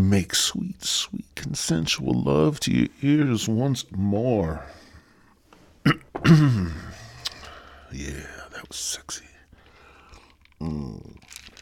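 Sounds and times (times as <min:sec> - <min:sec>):
speech: 0:00.0 - 0:04.8, 0:05.8 - 0:06.9, 0:07.9 - 0:09.3, 0:10.6 - 0:11.5
slurping diet sweet tea: 0:09.6 - 0:11.6.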